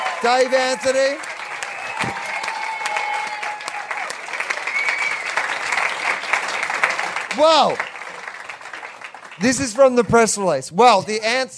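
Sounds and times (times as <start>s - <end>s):
audience applause: 0.0s - 10.4s
speech: 0.2s - 1.3s, 2.0s - 2.3s, 7.4s - 7.9s, 9.4s - 11.5s
whistles: 4.6s - 5.4s.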